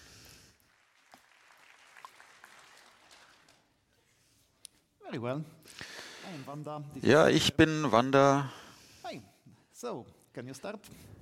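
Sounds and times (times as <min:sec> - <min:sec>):
audience applause: 0:00.6 - 0:03.7
speech: 0:05.1 - 0:11.1.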